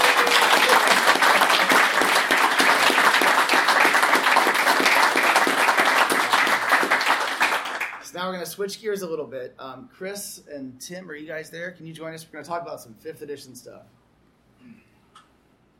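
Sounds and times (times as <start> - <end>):
audience round of applause: 0.0 - 8.0
speech: 8.2 - 14.0.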